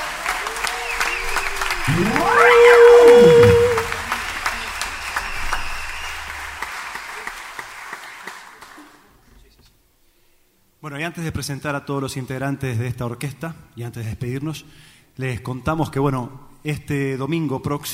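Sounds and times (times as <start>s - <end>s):
audience applause: 0.0s - 9.0s
sliding whistle-like cry: 0.9s - 4.2s
speech: 1.9s - 3.4s, 11.2s - 17.9s.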